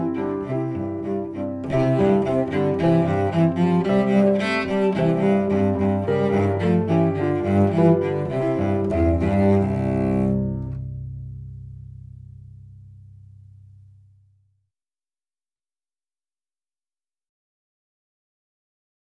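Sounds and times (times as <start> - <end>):
cello melody: 0.0 - 14.2.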